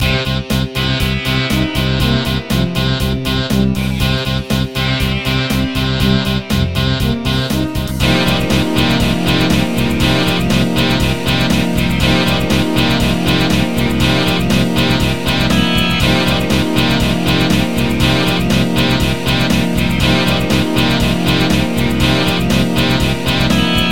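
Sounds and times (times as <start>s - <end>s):
hard rock music: 0.0s - 23.8s.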